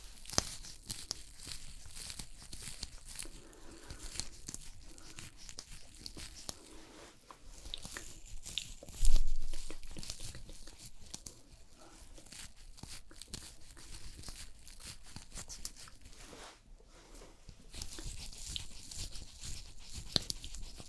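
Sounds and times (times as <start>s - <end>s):
fast aggressive makeup crinkling and tearing: 0.0s - 16.6s, 17.5s - 20.8s.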